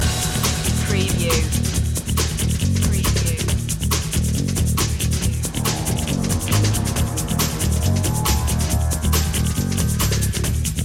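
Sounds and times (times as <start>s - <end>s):
checkpoint loop: 0.0s - 3.8s, 4.4s - 10.7s.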